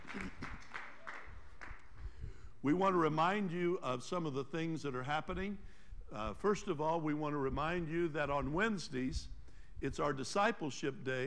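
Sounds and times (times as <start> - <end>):
audience applause: 0.0 - 1.8
speech: 2.6 - 11.2.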